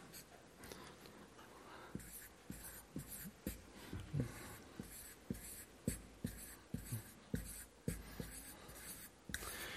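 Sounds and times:
writing on paper: 1.8 - 9.6.

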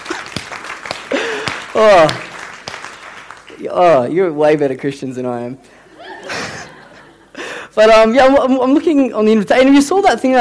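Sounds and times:
crowd cheering: 0.0 - 3.5
crowd clapping: 0.0 - 4.0
speech: 1.8 - 2.3, 3.6 - 5.8, 7.8 - 10.3
laughter: 5.9 - 7.4.

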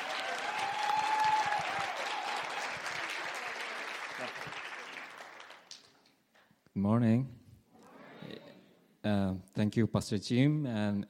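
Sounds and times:
audience applause: 0.0 - 6.0
speech: 6.8 - 7.4, 9.0 - 11.0.

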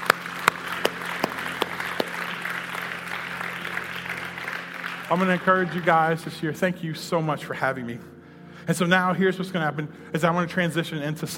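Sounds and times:
crowd clapping: 0.0 - 6.4
speech: 5.1 - 8.1, 8.7 - 11.3.

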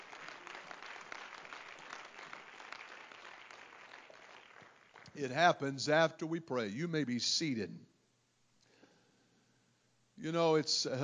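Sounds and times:
audience clapping hands: 0.0 - 5.3
speech: 5.2 - 7.9, 10.2 - 11.0.

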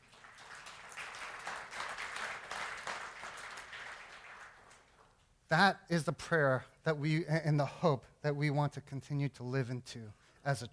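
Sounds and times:
audience applause: 0.0 - 4.9
speech: 5.5 - 10.7.

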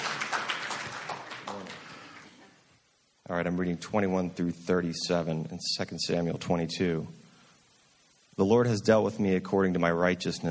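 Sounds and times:
audience clapping: 0.0 - 2.6
speech: 3.3 - 7.2, 8.4 - 10.4.

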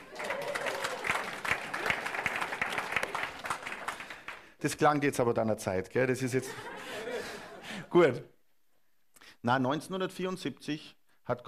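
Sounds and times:
audience applause: 0.0 - 4.5
speech: 4.6 - 7.1, 7.9 - 8.3, 9.4 - 11.4
laughter: 6.3 - 8.1.

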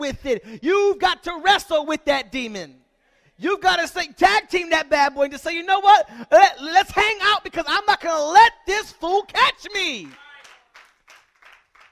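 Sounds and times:
speech: 0.0 - 2.8, 3.4 - 10.2
audience clapping in time: 9.9 - 11.9.

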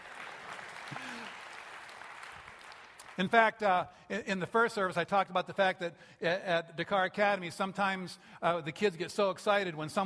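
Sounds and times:
audience clapping: 0.0 - 3.6
speech: 3.2 - 10.0.

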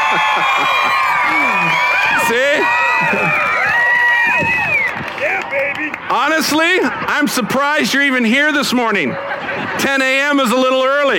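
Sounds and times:
laughter: 0.0 - 3.6, 9.0 - 10.4
crowd cheering and shouting: 0.0 - 11.1
audience clapping: 4.4 - 6.0
speech: 6.4 - 11.1.

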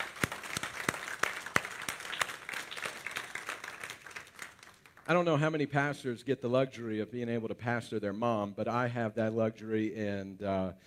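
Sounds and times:
audience applauding for mothers: 0.0 - 5.1
speech: 5.1 - 10.8.

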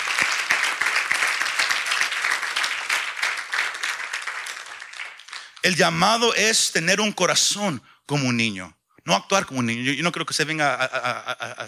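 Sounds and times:
audience applause: 0.0 - 5.7
speech: 5.6 - 11.6
laughter: 10.6 - 11.6.

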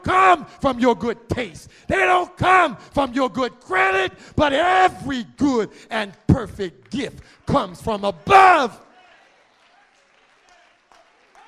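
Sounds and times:
speech: 0.1 - 8.9
audience clapping: 6.4 - 11.4.

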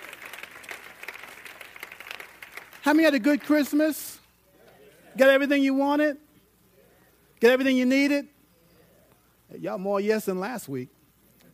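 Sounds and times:
audience hand clapping: 0.0 - 4.0
speech: 2.8 - 4.2, 5.2 - 6.2, 7.4 - 8.3, 9.5 - 11.0.

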